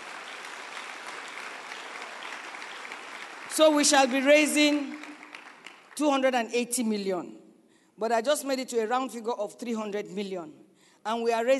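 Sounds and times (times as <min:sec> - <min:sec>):
audience clapping: 0:00.0 - 0:06.2
speech: 0:03.6 - 0:05.0, 0:06.0 - 0:07.4, 0:08.0 - 0:11.5.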